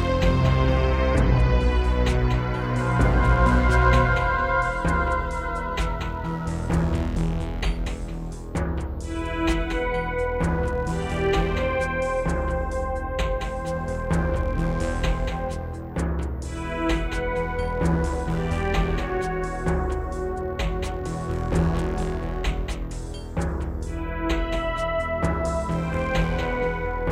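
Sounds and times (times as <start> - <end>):
synthesizer module music: 0.0 - 27.1.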